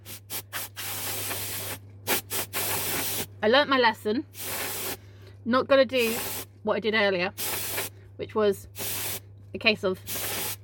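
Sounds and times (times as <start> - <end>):
anti-static air duster spraying: 0.0 - 3.3, 4.4 - 5.0, 6.0 - 6.5, 7.4 - 7.9, 8.8 - 9.2, 10.0 - 10.6
speech: 3.4 - 4.4, 5.4 - 7.4, 8.2 - 8.8, 9.5 - 10.2.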